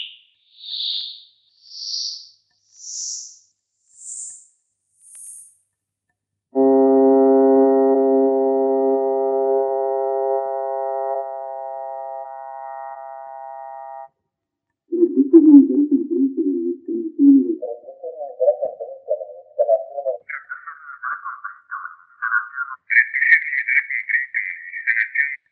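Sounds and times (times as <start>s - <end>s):
electronic noise: 6.6s - 14.1s, 14.9s - 23.0s
vocals: 14.9s - 25.4s.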